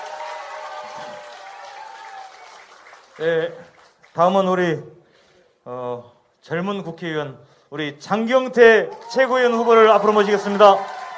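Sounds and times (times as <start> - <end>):
crowd cheering: 0.0 - 3.3, 8.9 - 11.1
applause: 0.0 - 4.4, 8.9 - 11.1
speech: 3.2 - 5.0, 5.6 - 11.0.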